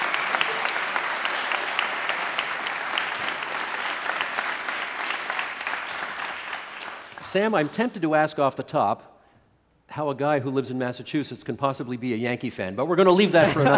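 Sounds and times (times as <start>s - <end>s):
audience applause welcoming panelists in Waterloo, Ontario: 0.0s - 7.7s
speech: 7.3s - 9.1s, 10.0s - 13.7s
laughter: 13.2s - 13.7s.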